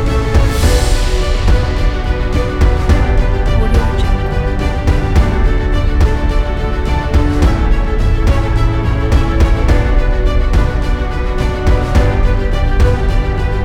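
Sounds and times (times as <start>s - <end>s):
epic motivational orchestral corporate music: 0.0s - 13.6s.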